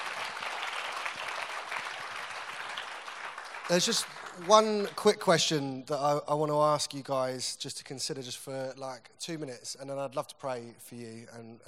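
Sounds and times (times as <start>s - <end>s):
audience clapping: 0.0s - 5.6s
speech: 3.7s - 11.6s.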